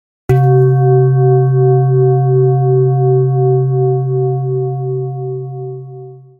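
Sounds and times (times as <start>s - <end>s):
gong: 0.3s - 6.3s.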